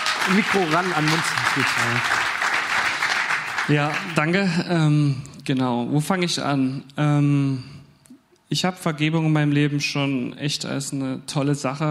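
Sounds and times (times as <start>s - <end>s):
audience applauding: 0.0s - 4.6s
speech: 0.2s - 2.2s, 3.7s - 7.8s, 8.5s - 11.8s.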